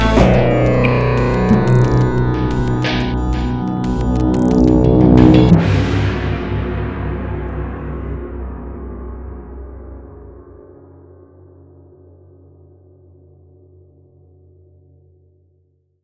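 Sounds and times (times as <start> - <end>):
electro orchestral suspense music: 0.0 - 8.2.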